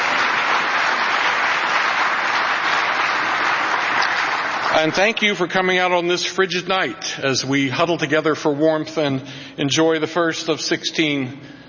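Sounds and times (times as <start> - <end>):
audience applause: 0.0 - 5.0
speech: 4.8 - 11.6.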